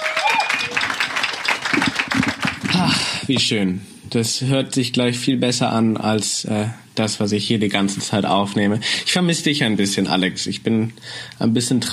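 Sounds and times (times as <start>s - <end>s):
group applause: 0.0s - 3.2s
speech: 2.8s - 11.9s.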